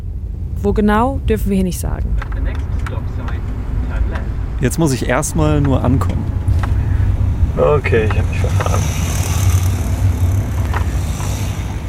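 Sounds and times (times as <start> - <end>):
speech: 0.6 - 2.6, 4.6 - 6.3, 7.6 - 9.0
mopeds driving past: 2.3 - 11.8.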